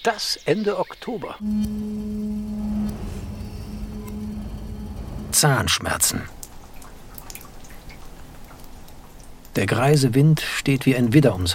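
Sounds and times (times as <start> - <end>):
speech: 0.0 - 2.1, 5.3 - 6.4, 9.6 - 11.5
rainwater dripping into barrels: 6.3 - 9.9.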